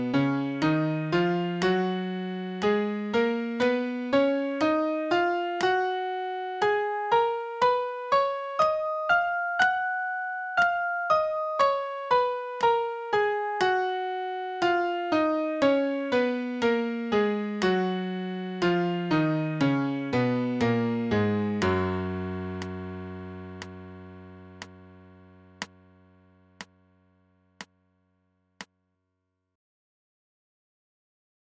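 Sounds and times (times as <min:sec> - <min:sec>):
MIDI major scale in G flat: 0:00.0 - 0:24.5.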